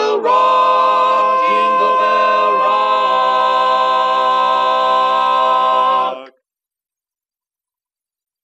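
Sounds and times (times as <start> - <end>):
tenor singing a Christmas song: 0.0 - 6.4.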